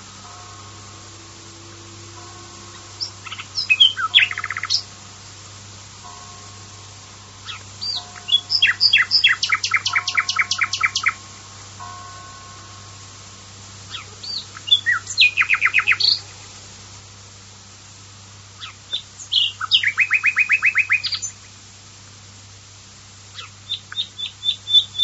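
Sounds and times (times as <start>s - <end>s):
common nightingale whistled song: 0.8s - 4.9s, 7.4s - 11.3s, 13.9s - 16.3s, 18.6s - 21.6s, 23.3s - 25.0s.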